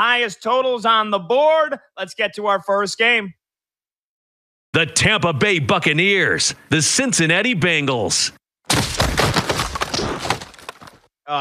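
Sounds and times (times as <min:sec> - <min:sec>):
speech: 0:00.0 - 0:03.4, 0:04.7 - 0:08.9
football shoulder pads crunching: 0:08.7 - 0:11.1.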